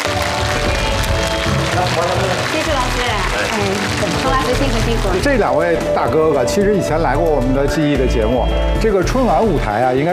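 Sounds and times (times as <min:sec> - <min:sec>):
audience applause: 0:00.0 - 0:05.8
speech: 0:03.6 - 0:10.1.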